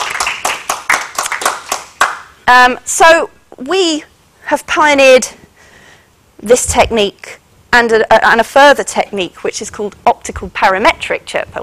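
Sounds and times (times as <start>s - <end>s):
audience clapping: 0.0s - 2.4s
speech: 2.5s - 5.4s, 6.4s - 11.6s.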